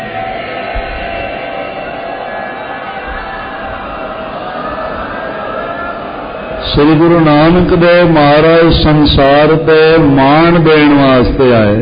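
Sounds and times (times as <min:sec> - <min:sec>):
Sikh congregation shouting a jaikara together: 0:00.0 - 0:06.7
speech: 0:06.7 - 0:11.8.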